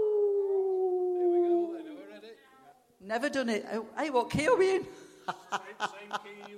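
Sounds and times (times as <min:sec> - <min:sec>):
person imitating a werewolf howl: 0:00.0 - 0:01.9
speech: 0:03.1 - 0:06.5
laughter: 0:05.2 - 0:06.5.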